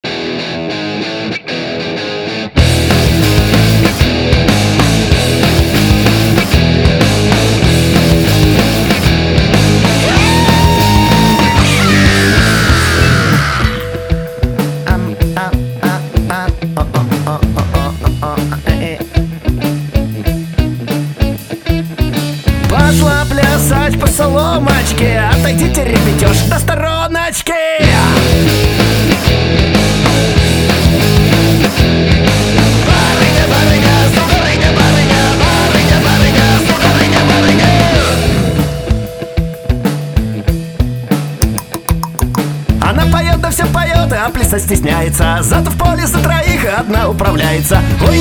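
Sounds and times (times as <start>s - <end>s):
punk rock music: 0.0s - 48.1s.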